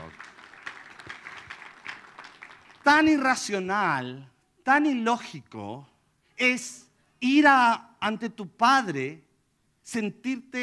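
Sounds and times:
audience applause: 0.0s - 3.2s
speech: 2.8s - 9.2s, 9.8s - 10.6s.

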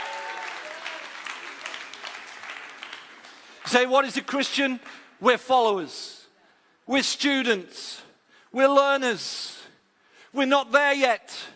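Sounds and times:
audience round of applause: 0.0s - 3.9s
speech: 3.7s - 6.2s, 6.9s - 9.6s, 10.3s - 11.5s.

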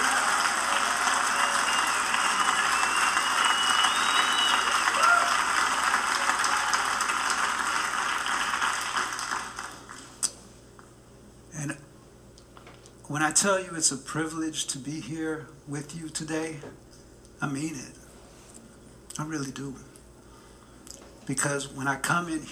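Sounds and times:
audience round of applause: 0.0s - 10.2s
speech: 13.2s - 16.8s, 17.4s - 18.0s, 19.2s - 19.9s, 21.3s - 22.5s.

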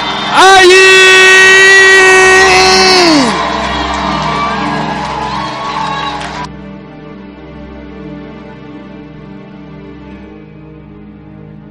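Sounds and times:
church congregation shouting and cheering: 0.0s - 6.5s.

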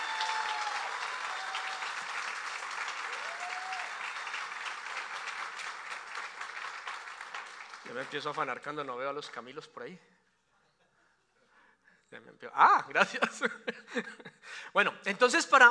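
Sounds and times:
church congregation clapping: 0.0s - 9.4s
speech: 7.9s - 10.2s, 12.1s - 15.7s.

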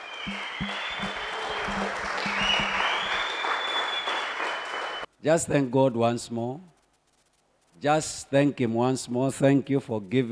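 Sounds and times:
audience clapping in celebration: 0.0s - 5.1s
speech: 5.2s - 6.7s, 7.8s - 10.2s.

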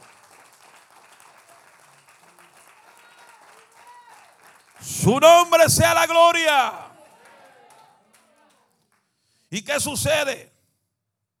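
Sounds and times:
audience applauding: 0.0s - 8.7s
speech: 4.8s - 6.8s, 9.5s - 10.5s.

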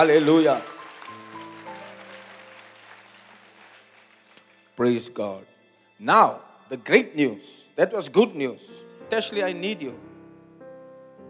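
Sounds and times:
speech: 0.0s - 0.7s, 4.8s - 10.1s
audience clapping: 0.0s - 4.8s.

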